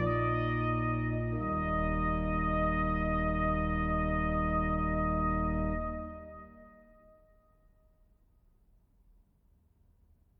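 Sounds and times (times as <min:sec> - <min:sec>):
organ: 0:00.0 - 0:06.4
trumpet playing a concerto andante: 0:00.0 - 0:07.8.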